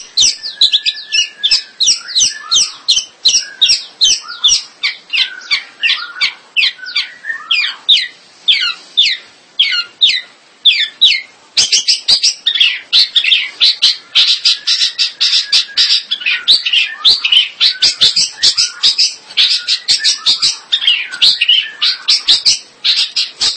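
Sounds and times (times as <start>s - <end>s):
bird song: 0.0s - 23.5s.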